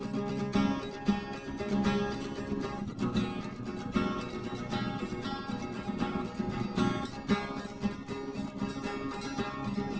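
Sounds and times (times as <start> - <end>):
instrumental music without drums: 0.0 - 9.9.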